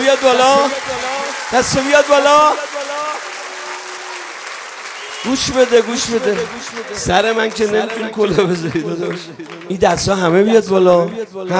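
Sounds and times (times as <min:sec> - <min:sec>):
audience clapping at a political rally: 0:00.0 - 0:11.5
speech: 0:00.1 - 0:02.7, 0:05.2 - 0:11.5.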